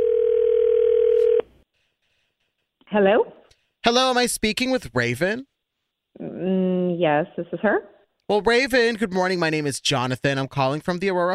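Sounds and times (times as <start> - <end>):
telephone dial tone before a call: 0.0 - 1.5
speech: 2.9 - 5.5, 6.2 - 11.3.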